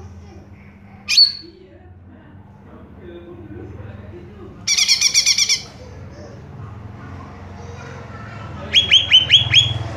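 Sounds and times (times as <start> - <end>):
greater green leafbird singing: 1.1 - 1.5, 4.7 - 5.8, 8.6 - 9.9.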